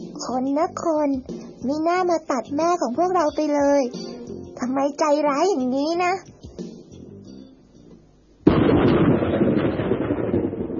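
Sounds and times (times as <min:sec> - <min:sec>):
speech: 0:00.2 - 0:06.3
thunder from the sky: 0:08.4 - 0:10.7.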